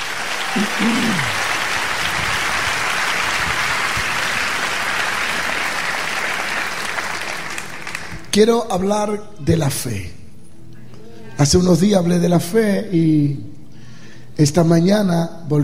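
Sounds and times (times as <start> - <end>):
audience applause: 0.0 - 8.3
speech: 0.5 - 1.4, 8.4 - 10.2, 11.4 - 13.6, 14.4 - 15.6.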